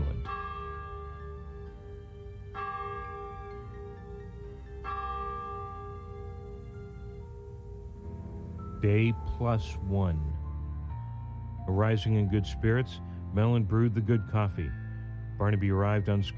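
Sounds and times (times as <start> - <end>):
clock bell tolling: 0.0 - 7.9
speech: 8.8 - 10.4, 11.7 - 14.8, 15.4 - 16.3.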